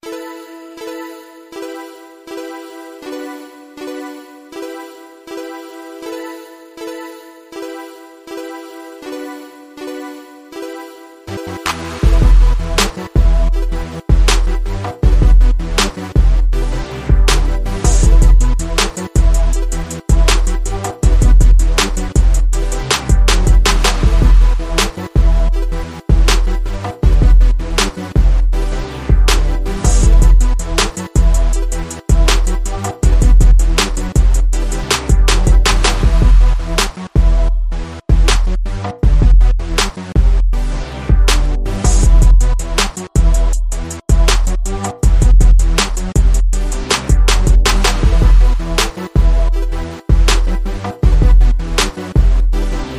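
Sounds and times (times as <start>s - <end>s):
beat: 11.5s - 52.9s.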